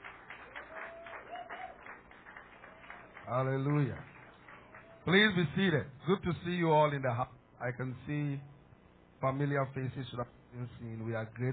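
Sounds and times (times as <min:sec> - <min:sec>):
audience clapping: 0:00.0 - 0:05.6
speech: 0:03.3 - 0:04.1, 0:05.0 - 0:08.5, 0:09.2 - 0:11.5.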